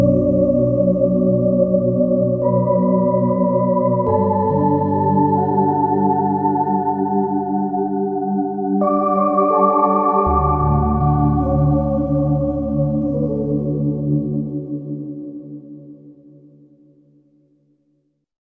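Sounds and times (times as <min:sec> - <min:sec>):
Korg MSC-10S ethnic synthesizer music: 0:00.0 - 0:14.8.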